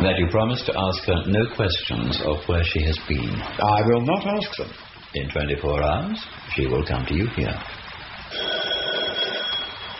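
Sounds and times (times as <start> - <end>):
speech: 0.0 - 8.6
electric doorbell ringing: 8.3 - 9.9.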